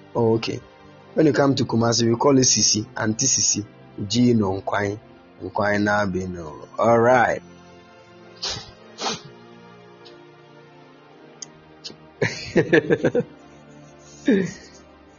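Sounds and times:
speech: 0.2s - 7.5s, 8.4s - 8.7s, 12.6s - 13.4s, 14.3s - 14.6s
person sneezing: 8.4s - 9.4s
laughter: 12.2s - 13.3s, 13.9s - 14.8s.

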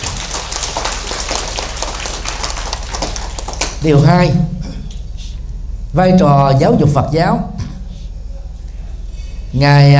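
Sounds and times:
audience applause: 0.0s - 3.8s
speech: 3.8s - 4.5s, 6.0s - 7.5s, 9.5s - 9.9s.

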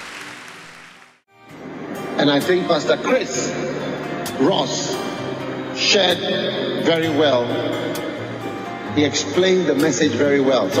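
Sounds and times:
audience clapping: 0.0s - 1.3s
speech: 2.2s - 4.9s, 5.8s - 8.0s, 9.0s - 10.7s.

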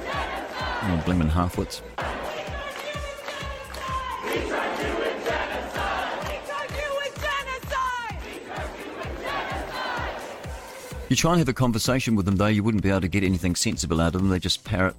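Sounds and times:
pounding beat: 0.0s - 11.1s
large crowd of protesters chanting and shouting: 0.0s - 11.2s
speech: 0.8s - 2.1s, 11.1s - 14.9s.

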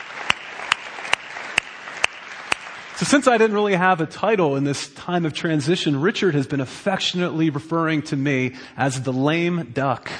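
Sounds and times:
audience applause: 0.0s - 3.5s
sharp loud claps: 0.0s - 3.6s
speech: 3.0s - 10.1s.

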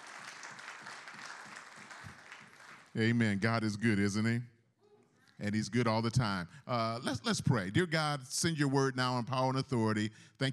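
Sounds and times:
crowd clapping: 0.0s - 3.2s
speech: 3.0s - 4.5s, 5.4s - 10.5s.

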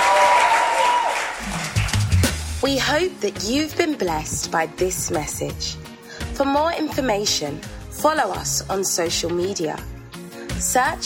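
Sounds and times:
crowd applause: 0.0s - 2.6s
speech: 2.7s - 9.9s, 10.6s - 11.0s.

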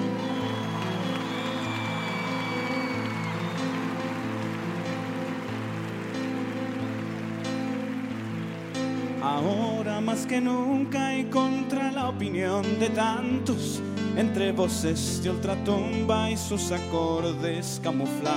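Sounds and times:
audience applause: 0.0s - 10.3s
speech: 9.3s - 18.3s.

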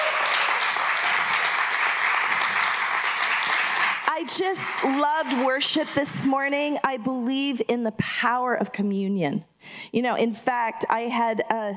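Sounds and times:
audience applause: 0.0s - 5.5s
speech: 4.2s - 11.7s.

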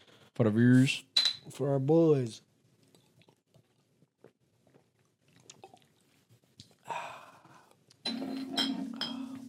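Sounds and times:
speech: 0.4s - 2.5s
gulping beer from a six-pack: 3.0s - 6.0s.

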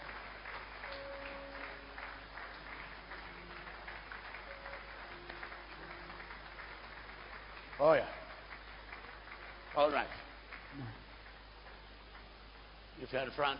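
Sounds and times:
audience clapping: 0.0s - 13.5s
speech: 7.8s - 8.2s, 9.8s - 11.0s, 13.0s - 13.5s.

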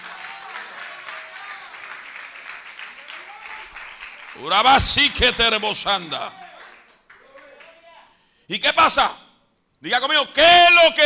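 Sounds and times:
audience applause: 0.0s - 7.9s
speech: 4.4s - 6.4s, 8.5s - 9.2s, 9.8s - 11.0s.

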